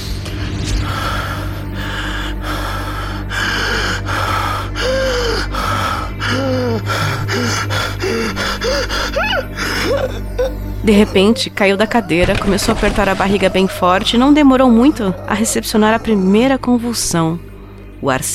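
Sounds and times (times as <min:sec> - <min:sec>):
person panting and hyperventilating: 0:00.8 - 0:10.3
soft moaning: 0:03.2 - 0:17.4
speech: 0:09.5 - 0:18.3.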